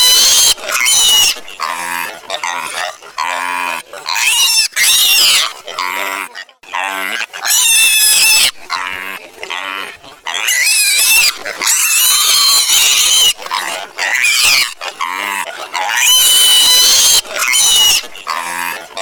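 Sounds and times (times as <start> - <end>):
piglet squealing: 0.0 - 19.0.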